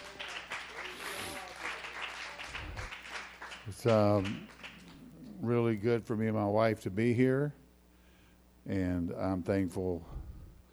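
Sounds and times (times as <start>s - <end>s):
audience clapping hands: 0.0s - 5.1s
speech: 3.7s - 4.5s, 5.4s - 7.6s, 8.7s - 10.2s.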